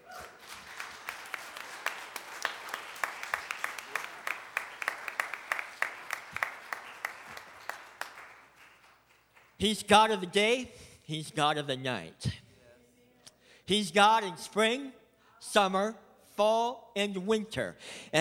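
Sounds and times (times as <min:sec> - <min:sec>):
large group clapping hands in a steady rhythm: 0:00.0 - 0:09.9
speech: 0:09.6 - 0:12.4, 0:13.7 - 0:18.2.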